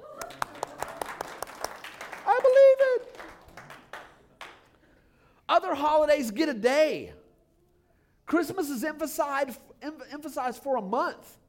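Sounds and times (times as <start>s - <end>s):
audience clapping: 0.0s - 4.9s
speech: 5.7s - 7.2s, 8.3s - 11.4s.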